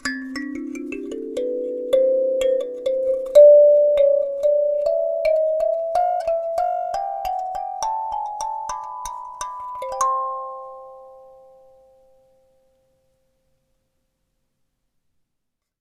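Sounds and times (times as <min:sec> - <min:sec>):
chromatic treble kalimba: 0:00.0 - 0:12.0.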